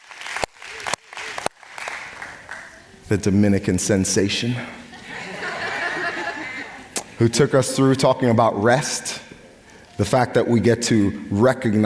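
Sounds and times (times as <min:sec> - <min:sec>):
slow clapping: 0:00.0 - 0:02.8
speech: 0:03.1 - 0:04.8, 0:07.2 - 0:09.2, 0:10.0 - 0:11.8
laughter: 0:04.8 - 0:07.2.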